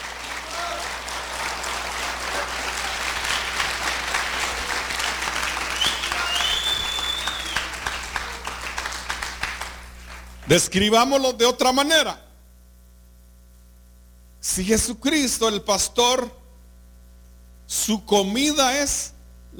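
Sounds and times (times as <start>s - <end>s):
audience applause: 0.0s - 10.4s
speech: 10.5s - 12.2s, 14.5s - 16.4s, 17.7s - 19.5s.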